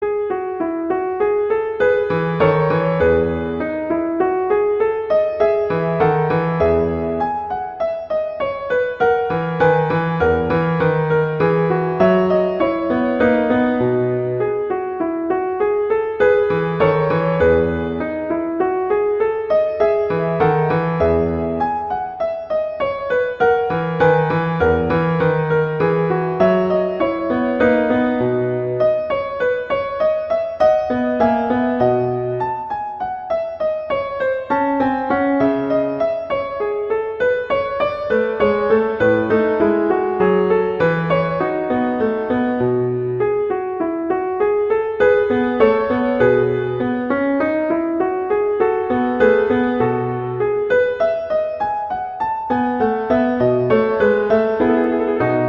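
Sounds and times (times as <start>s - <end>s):
minuet: 0.1s - 55.4s.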